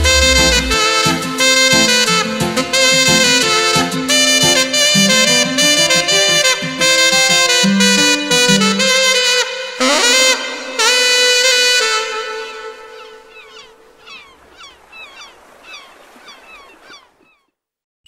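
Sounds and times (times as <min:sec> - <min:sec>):
saxophone: 0:00.0 - 0:13.8.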